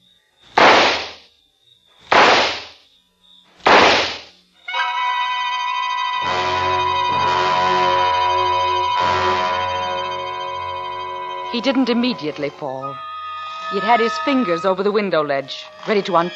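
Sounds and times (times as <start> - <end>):
handgun shots: 0.6 - 1.2, 2.1 - 2.8, 3.7 - 4.3
sustained swelling musical chord: 5.2 - 16.3
speech: 11.6 - 13.1, 13.7 - 16.3.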